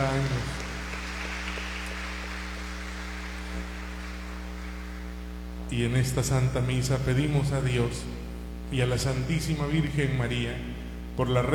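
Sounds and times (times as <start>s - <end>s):
crowd clapping steadily: 0.0s - 5.2s
low steady electrical hum: 0.0s - 11.5s
speech: 5.7s - 11.5s.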